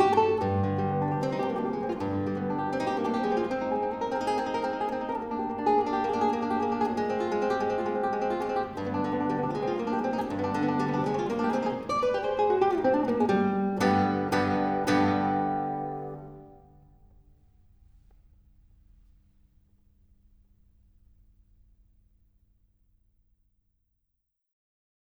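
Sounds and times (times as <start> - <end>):
guitar soleares: 0.0 - 18.0.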